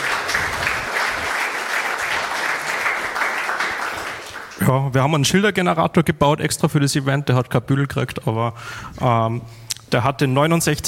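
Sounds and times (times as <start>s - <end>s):
audience applause: 0.0s - 4.6s
speech: 4.7s - 10.8s.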